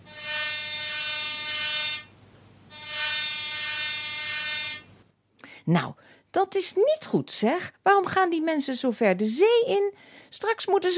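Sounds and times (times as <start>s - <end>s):
rescue boat horn tooting: 0.0s - 2.1s, 2.7s - 4.8s
speech: 5.6s - 10.9s.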